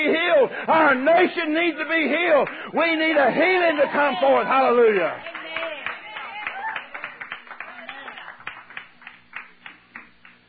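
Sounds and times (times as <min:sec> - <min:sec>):
speech: 0:00.6 - 0:05.3
audience applause: 0:03.2 - 0:10.4.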